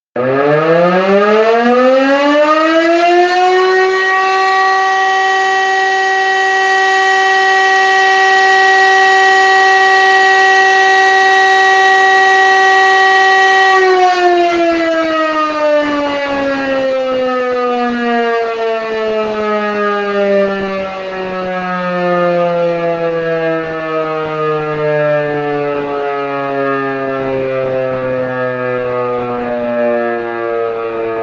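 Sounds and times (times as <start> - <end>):
siren test: 0.2 - 31.2.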